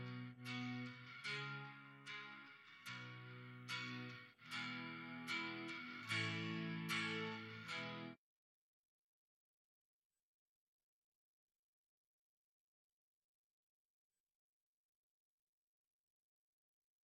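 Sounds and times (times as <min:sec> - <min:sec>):
guitar: 0:00.0 - 0:08.2.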